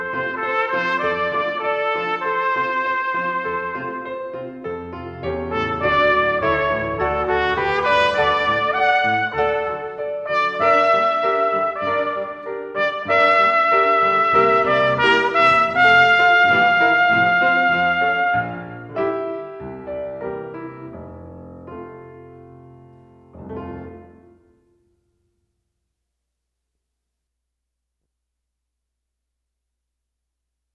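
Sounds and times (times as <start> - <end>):
trumpet serenade: 0.0 - 4.4, 5.4 - 19.4.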